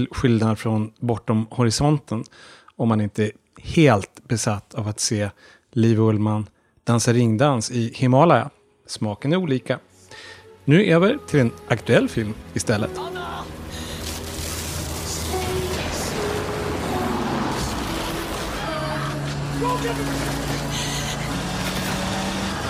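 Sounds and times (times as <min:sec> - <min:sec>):
speech: 0:00.0 - 0:13.3, 0:19.8 - 0:20.5
dramatic film trailer audio: 0:09.8 - 0:22.6.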